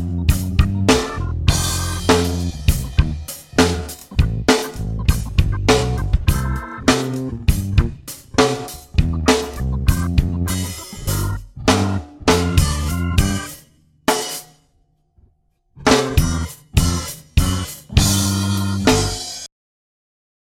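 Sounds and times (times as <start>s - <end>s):
funk backing track without guitar: 0.0s - 14.6s, 15.8s - 19.5s.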